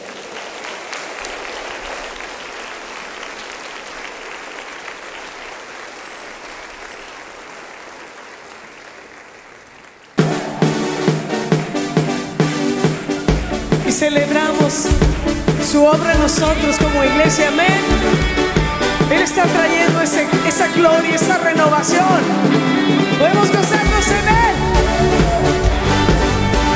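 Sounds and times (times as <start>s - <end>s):
audience applause: 0.0s - 26.7s
speech: 14.0s - 15.1s, 15.7s - 18.2s, 19.1s - 24.3s.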